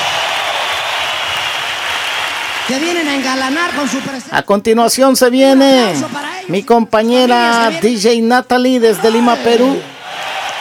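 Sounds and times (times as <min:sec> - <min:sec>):
applause: 0:00.0 - 0:04.3
speech: 0:02.7 - 0:09.9.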